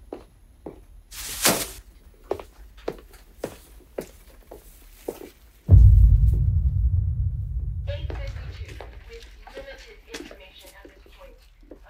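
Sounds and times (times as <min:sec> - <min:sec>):
bomb explosion rumble: 0:05.7 - 0:09.3.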